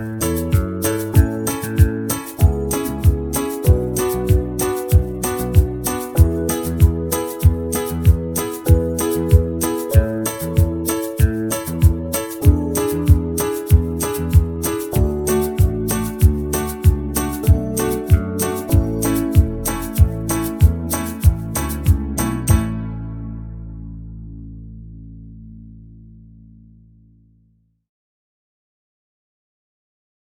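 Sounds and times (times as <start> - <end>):
slow banjo backing track: 0.0 - 23.0.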